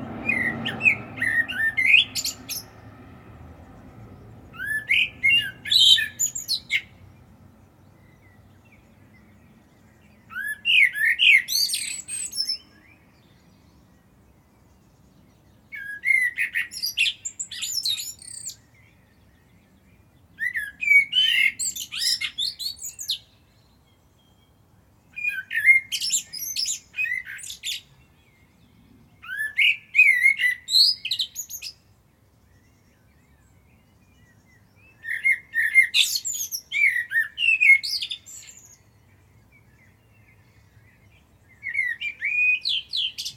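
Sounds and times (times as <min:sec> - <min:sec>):
common blackbird song: 0:00.0 - 0:43.3.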